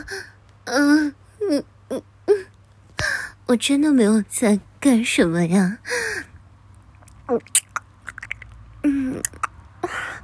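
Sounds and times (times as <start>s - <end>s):
speech: 0.7s - 1.7s, 3.5s - 6.3s, 7.3s - 7.6s
chewing and mouth noises of someone eating: 6.9s - 8.6s, 9.2s - 9.5s.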